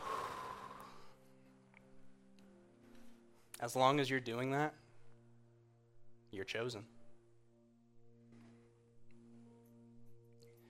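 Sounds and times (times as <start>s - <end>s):
deep breath in and out: 0.0s - 1.6s
speech: 3.6s - 4.8s, 6.3s - 7.0s.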